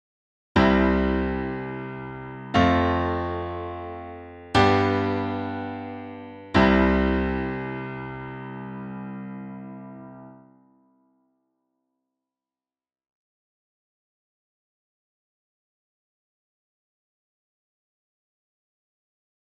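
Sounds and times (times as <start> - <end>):
1 4 5 1 chord progression in C major: 0.6 - 10.4.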